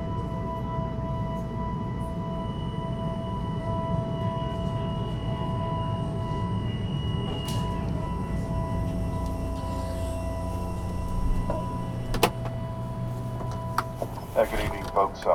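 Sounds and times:
commuter rail train rumble on the University of Colorado A line: 0.0s - 15.3s
faint squeal: 5.6s - 13.0s
commuter rail train electric hum tones: 7.8s - 15.3s.

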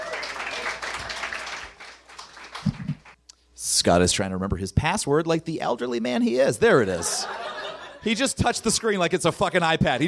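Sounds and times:
audience applause: 0.0s - 3.2s
speech: 3.8s - 7.4s, 8.0s - 10.0s
laughter: 6.8s - 9.0s.

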